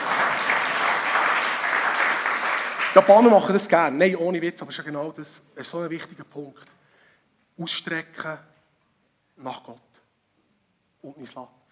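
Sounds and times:
brief audience applause: 0.0 - 3.6
speech: 3.0 - 6.8, 7.6 - 8.5, 9.4 - 9.9, 11.0 - 11.6.

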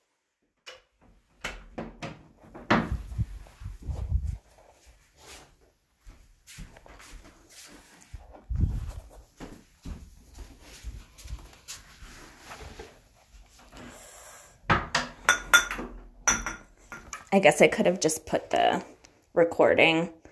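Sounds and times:
soft knocks and shuffling: 2.8 - 13.8
dishes and glassware clinking while getting a glass of water: 15.2 - 17.3
speech: 17.3 - 20.3.

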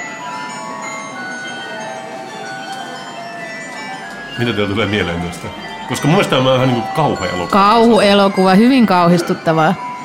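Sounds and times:
many small plastic musical Christmas cottages chiming: 0.0 - 10.0
speech: 4.4 - 9.8.

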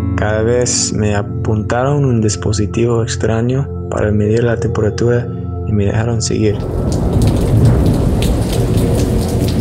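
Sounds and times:
speech: 0.2 - 7.0
thunder rumbling: 6.5 - 9.5
heavy downpour: 6.6 - 9.5
raindrop hits: 6.6 - 9.5.

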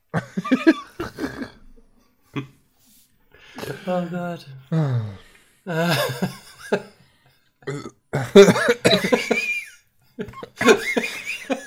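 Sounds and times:
person coughing after energy drink went down wrong: 0.1 - 1.6, 7.7 - 9.6
laughter: 0.2 - 1.6, 5.7 - 7.0, 8.3 - 11.6
speech: 0.5 - 0.8, 2.4 - 2.6, 3.9 - 4.9, 5.6 - 6.9, 8.4 - 9.1.

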